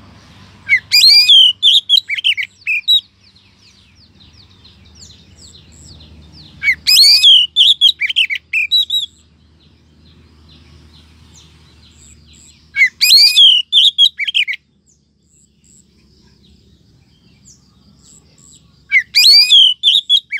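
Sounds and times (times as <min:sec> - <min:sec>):
Oriental magpie-robin rising whistle: 0:00.6 - 0:03.1, 0:06.6 - 0:09.2, 0:12.7 - 0:14.6, 0:18.9 - 0:20.3.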